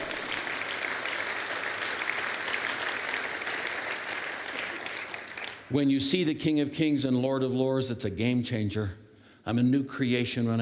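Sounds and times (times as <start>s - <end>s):
crowd clapping and cheering: 0.0s - 5.8s
speech: 5.7s - 10.5s.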